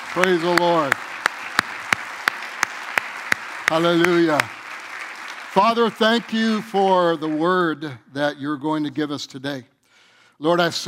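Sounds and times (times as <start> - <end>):
audience clapping in unison: 0.0 - 7.9
speech: 0.2 - 1.1, 3.7 - 4.6, 5.6 - 9.7, 10.4 - 10.8.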